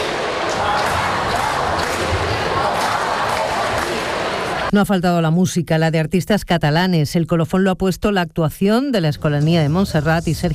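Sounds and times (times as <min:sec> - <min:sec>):
crowd of 40,000 cheering the Pope's entrance at Montjuïc Olympic Stadium: 0:00.0 - 0:04.7
speech: 0:04.7 - 0:10.5.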